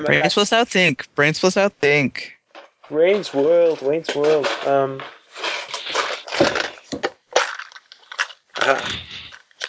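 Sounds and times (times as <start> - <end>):
speech: 0.0 - 5.5, 8.6 - 9.1
dice rattling and clattering as shaken and rolled: 3.1 - 9.6.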